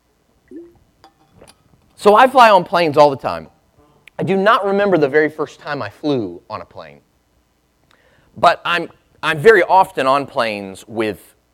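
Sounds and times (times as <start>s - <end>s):
person drinking water: 0.5s - 1.8s
speech: 2.0s - 3.5s, 4.2s - 7.1s, 8.4s - 11.3s.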